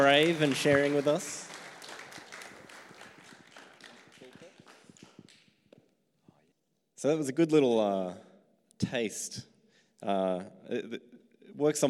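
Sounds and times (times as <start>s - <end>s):
speech: 0.0s - 1.6s, 7.0s - 8.2s, 8.8s - 11.8s
audience applause: 0.0s - 5.4s.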